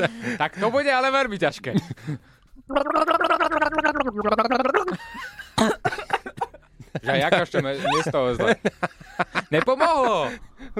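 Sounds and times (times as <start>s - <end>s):
speech: 0.0s - 3.5s, 4.1s - 5.3s, 7.1s - 10.7s
person gargling a tune: 2.6s - 5.0s
laughter: 4.7s - 10.5s.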